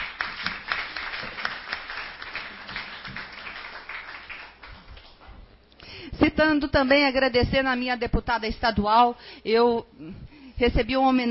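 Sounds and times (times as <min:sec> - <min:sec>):
audience applause: 0:00.0 - 0:05.2
speech: 0:06.3 - 0:11.2.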